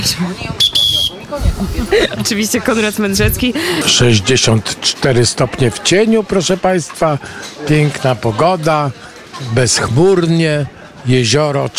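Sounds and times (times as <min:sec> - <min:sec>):
speech: 0:00.0 - 0:00.7, 0:01.3 - 0:11.7
strong whistle blown into microphone: 0:00.6 - 0:01.2
laughter: 0:01.1 - 0:02.5.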